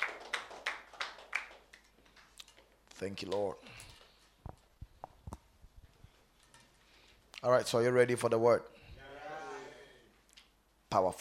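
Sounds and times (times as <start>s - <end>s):
audience clapping hands: 0.0s - 2.5s
speech: 3.0s - 3.9s, 7.4s - 8.8s, 10.9s - 11.1s.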